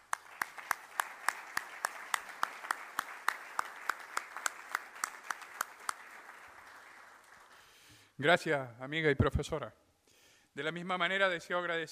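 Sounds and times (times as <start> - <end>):
audience applause: 0.0 - 7.9
speech: 8.2 - 9.8, 10.6 - 11.9.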